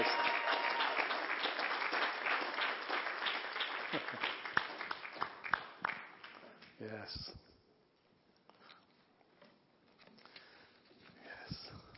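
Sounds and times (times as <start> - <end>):
audience clapping and cheering: 0.0 - 6.6.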